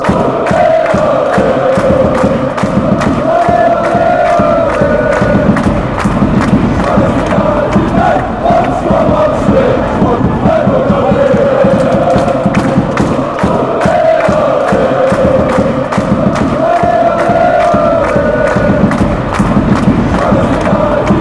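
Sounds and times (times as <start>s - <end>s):
chanting: 0.0s - 21.1s.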